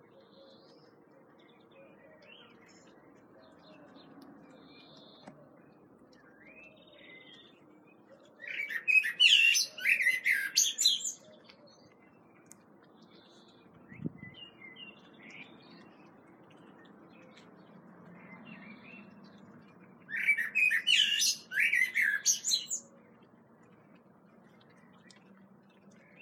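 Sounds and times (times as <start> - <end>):
common blackbird song: 0.0 - 19.4, 20.0 - 23.2.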